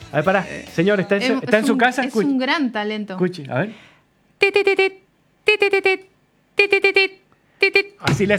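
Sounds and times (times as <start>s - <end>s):
speech: 0.1s - 8.3s
voice imitating old alarm clock beeping: 4.4s - 8.1s.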